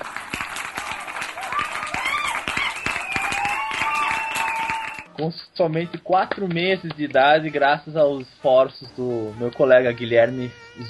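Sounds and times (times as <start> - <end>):
applause: 0.0 - 5.1
speech: 5.2 - 10.8.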